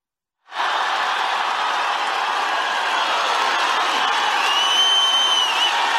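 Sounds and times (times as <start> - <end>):
massive rally crowd cheering: 0.5 - 5.9
high whistles: 4.4 - 5.9.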